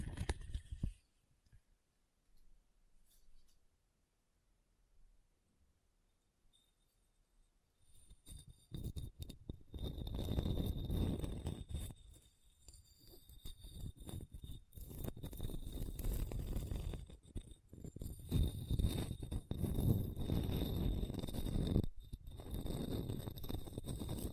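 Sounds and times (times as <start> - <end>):
scratching on a hard, bumpy surface: 0.0 - 1.0, 7.9 - 24.3.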